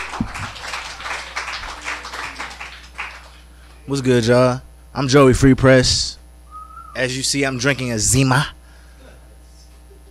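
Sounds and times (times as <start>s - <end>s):
audience applause for comedian: 0.0s - 3.4s
speech: 3.9s - 6.2s, 7.0s - 8.6s.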